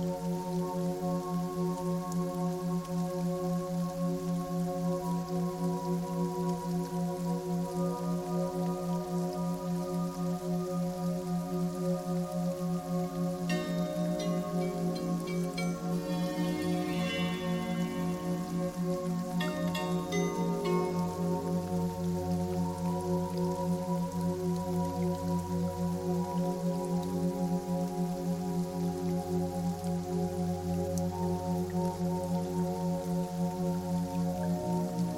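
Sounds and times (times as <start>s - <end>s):
steady rain hiss: 0.0s - 35.1s
sustained ringing piano tones: 13.5s - 21.8s.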